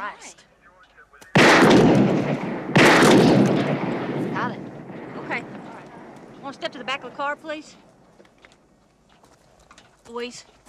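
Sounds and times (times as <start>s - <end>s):
speech: 0.0s - 0.5s, 6.5s - 7.8s, 10.1s - 10.5s
gunshots: 1.3s - 7.4s.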